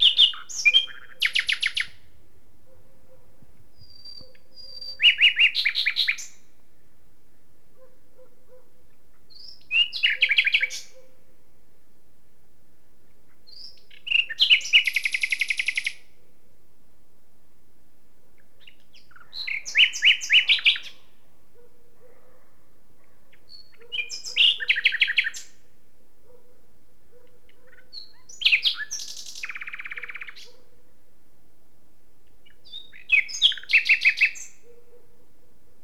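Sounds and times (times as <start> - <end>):
common nightingale song: 0.0 - 11.3, 12.8 - 16.4, 18.3 - 21.9, 23.0 - 25.7, 27.2 - 30.8, 32.2 - 35.1.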